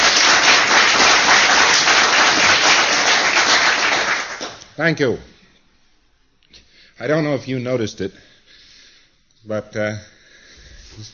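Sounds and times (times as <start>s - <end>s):
audience applause: 0.0s - 4.6s
speech: 4.8s - 5.3s, 7.0s - 8.3s, 9.4s - 10.1s, 10.9s - 11.1s.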